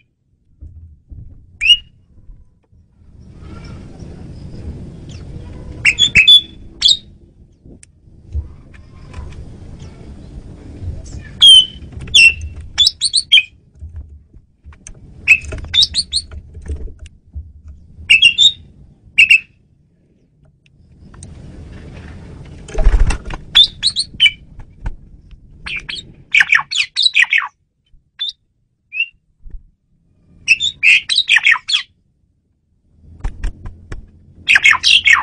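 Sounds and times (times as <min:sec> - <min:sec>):
low hum and rumble: 0:00.0 - 0:26.8, 0:27.6 - 0:30.8, 0:31.8 - 0:35.2
Asian pied starling chirping: 0:01.6 - 0:02.0, 0:03.2 - 0:07.1, 0:11.2 - 0:13.6, 0:15.2 - 0:16.4, 0:18.0 - 0:19.6, 0:23.5 - 0:24.4, 0:25.6 - 0:27.6, 0:28.2 - 0:29.2, 0:30.4 - 0:31.9, 0:34.4 - 0:35.2.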